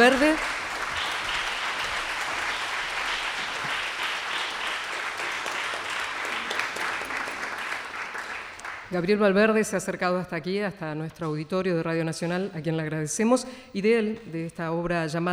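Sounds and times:
applause: 0.0 - 9.0
speech: 8.9 - 15.3.

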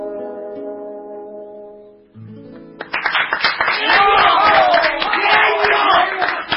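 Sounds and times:
people clapping: 2.6 - 6.5.

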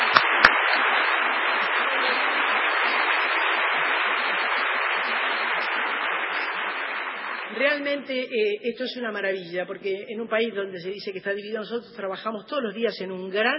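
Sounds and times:
audience applause: 0.0 - 7.8
speech: 7.6 - 13.5.

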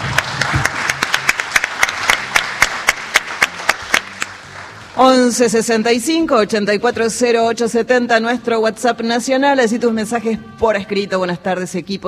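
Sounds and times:
applause: 0.0 - 5.0
speech: 5.0 - 12.0.

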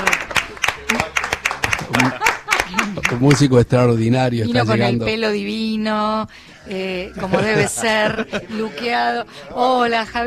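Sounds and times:
audience applause for a musician: 0.0 - 3.9
laughter: 0.6 - 3.5, 6.9 - 9.6
speech: 3.2 - 10.2.

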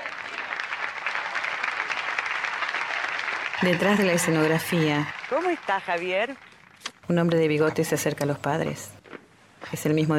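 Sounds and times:
audience applause: 0.0 - 6.9
speech: 3.6 - 6.5, 7.1 - 9.0, 9.7 - 10.1.

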